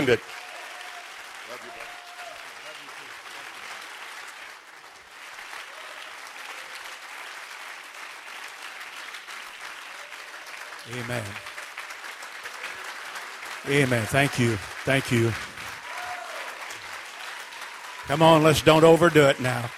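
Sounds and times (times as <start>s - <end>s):
speech: 0.0s - 0.3s, 10.9s - 11.5s, 13.6s - 15.5s, 18.1s - 19.7s
audience applause welcoming a church district superintendent: 0.0s - 19.7s.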